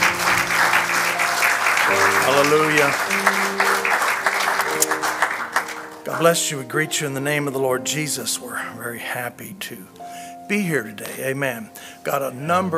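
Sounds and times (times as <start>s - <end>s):
audience applauding: 0.0s - 6.6s
speech: 2.3s - 3.8s, 6.1s - 12.7s.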